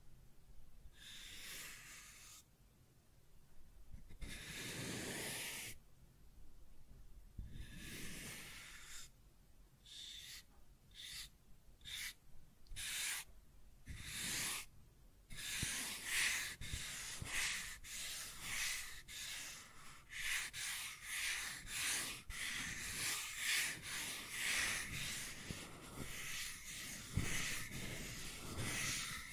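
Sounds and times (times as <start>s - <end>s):
scratching and tracing strokes: 1.0s - 2.5s, 4.0s - 5.8s, 7.4s - 9.2s, 9.8s - 13.3s, 13.9s - 14.7s, 15.3s - 29.3s.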